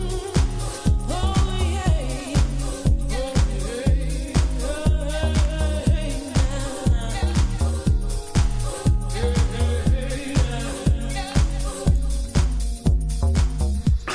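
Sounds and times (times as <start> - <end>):
big beat music: 0.0 - 14.1.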